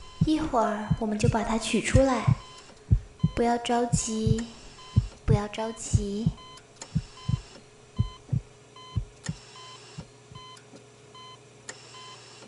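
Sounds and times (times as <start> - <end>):
short electronic monitor beeps: 0.0 - 1.4, 2.0 - 9.8, 10.4 - 10.6
patient's heartbeat thumping: 0.0 - 9.4, 10.3 - 10.5
faint hum: 0.0 - 12.4
speech: 0.3 - 2.4, 3.4 - 4.6, 5.3 - 6.4.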